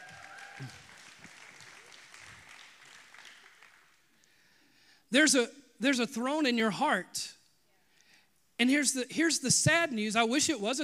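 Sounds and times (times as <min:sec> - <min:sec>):
audience clapping hands: 0:00.0 - 0:04.3
speech: 0:00.6 - 0:00.8, 0:05.1 - 0:07.4, 0:08.6 - 0:10.8.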